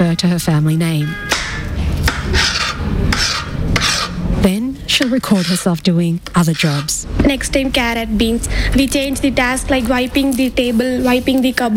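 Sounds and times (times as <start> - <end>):
speech: 0.1 - 1.6, 4.4 - 11.7
knife chopping onions: 2.0 - 4.2, 4.9 - 5.7.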